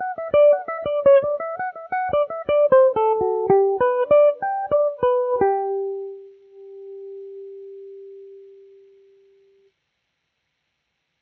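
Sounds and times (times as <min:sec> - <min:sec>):
Irish mandolin in G major: 0:00.0 - 0:08.3.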